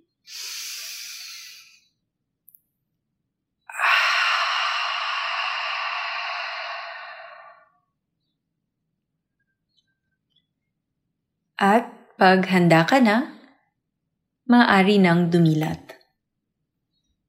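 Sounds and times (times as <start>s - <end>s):
person breathing deeply during a guided breathing exercise: 0.3s - 1.9s, 3.7s - 7.8s
speech: 11.6s - 13.4s, 14.5s - 15.9s.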